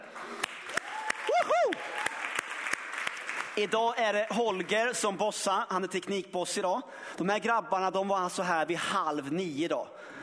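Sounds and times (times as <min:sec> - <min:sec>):
applause: 0:00.0 - 0:05.2
speech: 0:03.6 - 0:10.2.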